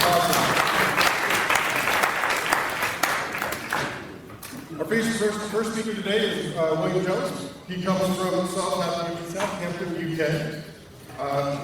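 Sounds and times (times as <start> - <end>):
audience cheering and applauding: 0.0 - 3.8
speech: 4.9 - 11.6.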